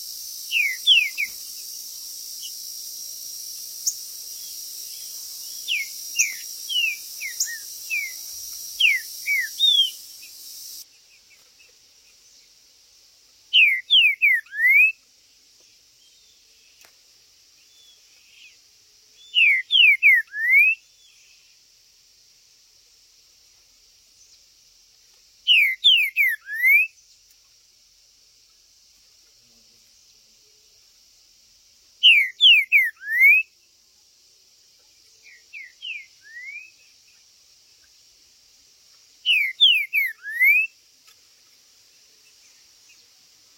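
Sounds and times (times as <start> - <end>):
green-winged saltator whistled song: 0.0 - 1.8, 3.8 - 10.8, 13.5 - 15.0, 19.2 - 21.3, 25.4 - 27.0, 32.0 - 33.5, 35.2 - 37.2, 39.2 - 40.8
high hiss: 0.0 - 43.5.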